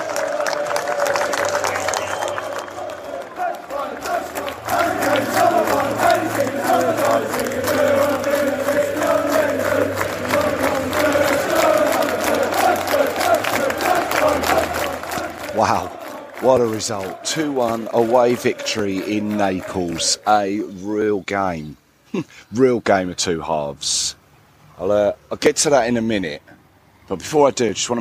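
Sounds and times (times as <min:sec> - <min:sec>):
scattered clapping: 0:00.0 - 0:20.4
football supporters cheering in stadium: 0:00.0 - 0:20.5
speech: 0:16.5 - 0:24.2, 0:24.8 - 0:26.5, 0:27.1 - 0:27.9.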